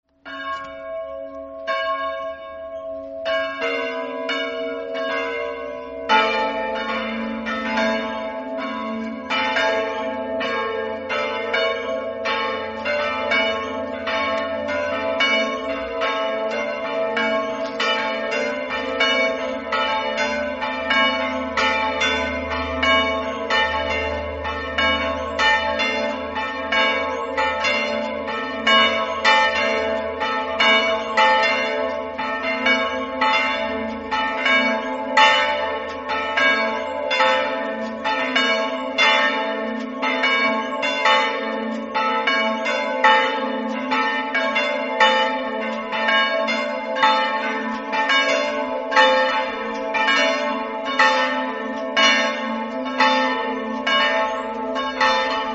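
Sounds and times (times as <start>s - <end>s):
bells ringing: 0.2s - 55.5s.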